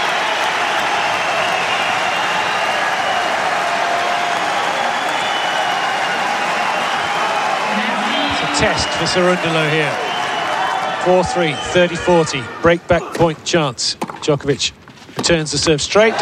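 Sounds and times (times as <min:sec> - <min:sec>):
tennis crowd applauding and cheering: 0:00.0 - 0:12.4
speech: 0:08.6 - 0:10.1, 0:11.0 - 0:16.2.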